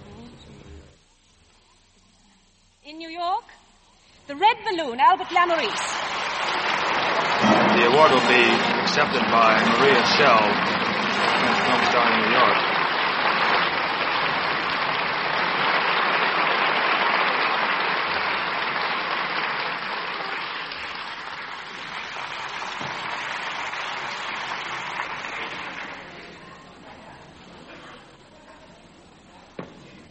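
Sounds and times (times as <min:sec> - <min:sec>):
speech: 0:02.9 - 0:03.6, 0:04.3 - 0:06.6, 0:07.5 - 0:10.8, 0:11.7 - 0:12.7
large audience applauding: 0:05.0 - 0:26.5.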